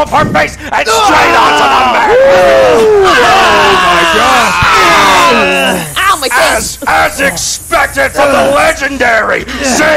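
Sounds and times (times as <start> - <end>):
speech: 0.0 - 4.7, 5.3 - 9.9
wrestling crowd roaring and cheering after a moonsault: 0.9 - 7.3.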